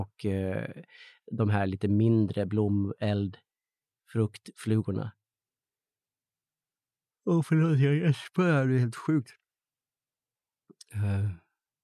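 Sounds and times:
speech: 0.0 - 3.5, 4.1 - 5.2, 7.2 - 9.4, 10.9 - 11.4
person yawning: 10.9 - 11.4.

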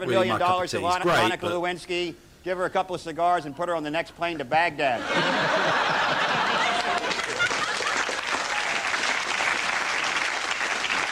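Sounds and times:
speech: 0.0 - 5.9
laughter: 5.0 - 8.7
audience applause: 6.4 - 11.0.

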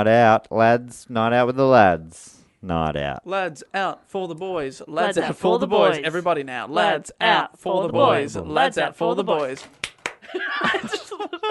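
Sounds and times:
speech: 0.0 - 11.4
sharp clap-like smack: 9.6 - 10.2
laughter and snickering: 10.2 - 11.4.

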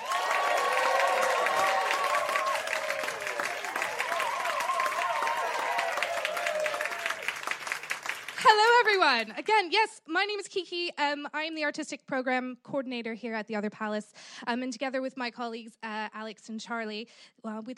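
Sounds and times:
cheers and whoops: 0.0 - 7.8
crowd applauding: 0.0 - 9.4
speech: 9.0 - 17.7.

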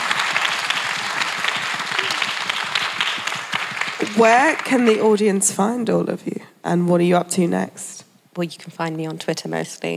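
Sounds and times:
audience applause: 0.0 - 5.0
speech: 4.1 - 9.9.

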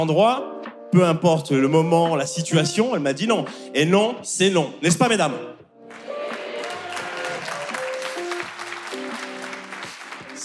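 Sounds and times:
speech: 0.0 - 5.6
audience applause, mostly women clapping: 5.8 - 10.4.

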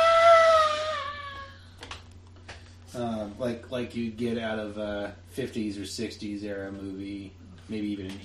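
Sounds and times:
woman's shrill horror movie scream: 0.0 - 1.6
speech: 3.0 - 8.2.

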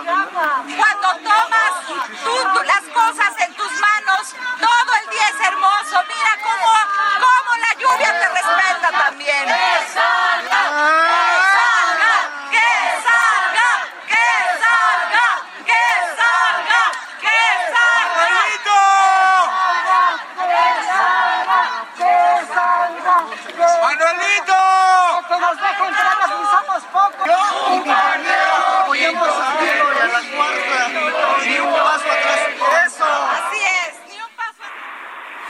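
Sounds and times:
large crowd chanting outside National Palace: 0.0 - 35.4.

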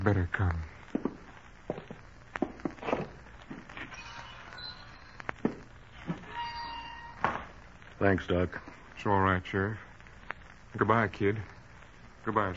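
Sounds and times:
speech: 0.0 - 0.7, 8.0 - 9.9, 10.8 - 11.5, 12.2 - 12.5
quiet hiss: 0.0 - 12.5
light footsteps walking out toward a porch: 0.8 - 4.0, 5.2 - 6.3.

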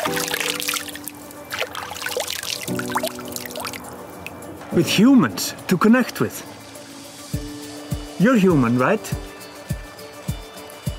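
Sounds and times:
water pouring and trickling: 0.0 - 4.4
speech: 4.8 - 6.5, 8.2 - 9.3.

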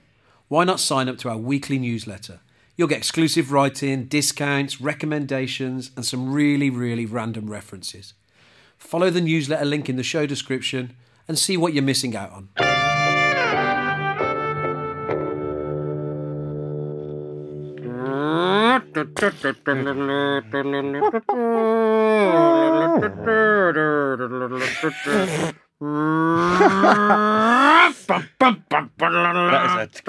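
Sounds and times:
speech: 0.5 - 8.2, 8.8 - 13.4, 19.0 - 30.0
TV theme tune: 12.6 - 20.0
laughter: 18.1 - 25.5, 26.1 - 30.0.

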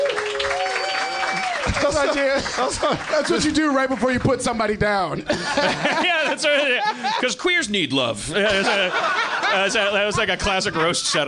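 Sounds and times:
whistles and cheers: 0.0 - 1.9
crowd clapping: 0.0 - 4.6
speech: 1.7 - 11.2
laughter: 1.8 - 3.6, 5.1 - 7.5, 8.2 - 11.2.

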